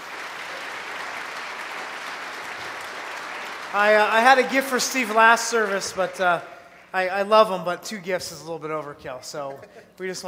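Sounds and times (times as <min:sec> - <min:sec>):
round of applause: 0:00.0 - 0:06.9
speech: 0:03.7 - 0:10.2.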